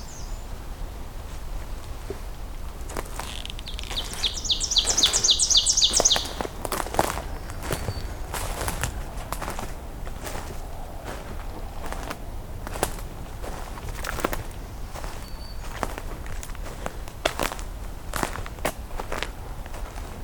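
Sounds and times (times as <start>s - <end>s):
songbird trill: 0.0s - 1.0s, 2.8s - 9.0s, 14.2s - 16.2s
low hum: 0.0s - 20.2s
rustling footsteps on a morning hike: 1.2s - 20.2s.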